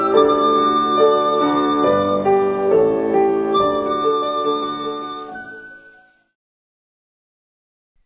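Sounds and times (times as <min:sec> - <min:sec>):
pan flute: 0:00.0 - 0:06.3.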